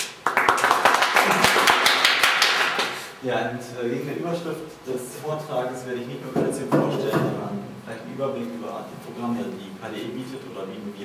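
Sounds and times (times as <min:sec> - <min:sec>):
audience applause: 0:00.0 - 0:03.0
speech: 0:03.2 - 0:11.0.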